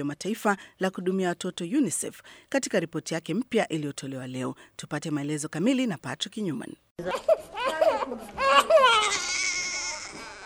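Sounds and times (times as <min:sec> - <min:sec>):
speech: 0:00.0 - 0:09.3
newborn baby crying: 0:07.1 - 0:10.4.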